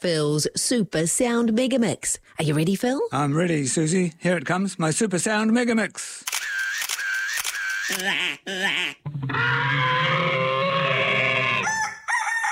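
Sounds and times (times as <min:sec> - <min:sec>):
speech: 0:00.0 - 0:06.6, 0:07.9 - 0:10.6
rooster crowing: 0:09.3 - 0:12.5.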